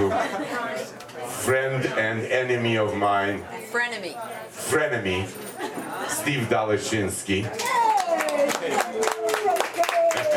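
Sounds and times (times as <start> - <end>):
speech: 1.5 - 7.8
audience clapping: 7.6 - 10.3.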